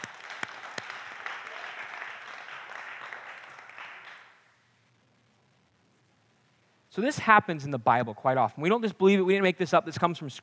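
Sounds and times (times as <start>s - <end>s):
audience applause: 0.0s - 4.4s
speech: 7.0s - 10.4s.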